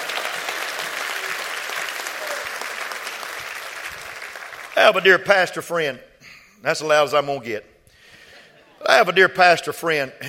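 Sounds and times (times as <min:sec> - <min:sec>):
audience clapping hands: 0:00.0 - 0:05.5
speech: 0:04.8 - 0:07.7, 0:08.8 - 0:10.2.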